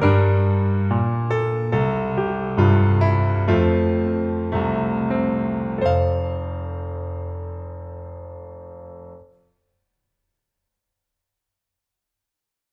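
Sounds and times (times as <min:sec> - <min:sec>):
piano: 0:00.0 - 0:09.3.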